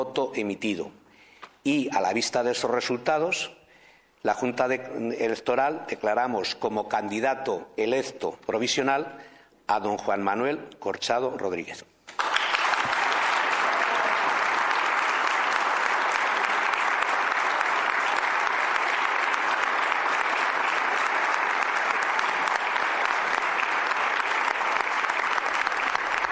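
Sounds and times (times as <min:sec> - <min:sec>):
speech: 0:00.0 - 0:01.0, 0:01.6 - 0:03.6, 0:04.2 - 0:12.3
applause in a hall: 0:12.1 - 0:26.2.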